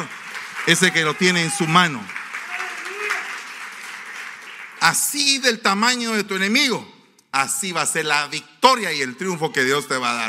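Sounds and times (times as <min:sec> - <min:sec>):
voices calling and cheering: 0:00.0 - 0:03.4
audience clapping: 0:00.0 - 0:05.5
speech: 0:00.7 - 0:02.2, 0:04.8 - 0:10.2.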